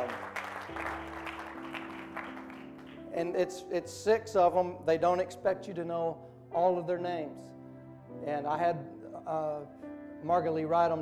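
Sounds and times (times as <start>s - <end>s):
audience at Grace Point clapping to welcome a family: 0.0s - 3.1s
speech: 3.2s - 7.5s, 8.2s - 10.9s.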